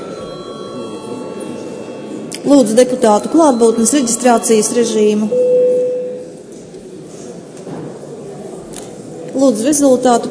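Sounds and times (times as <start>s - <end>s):
parliament session bell: 0.0s - 6.4s
speech: 2.4s - 5.7s, 9.4s - 10.2s.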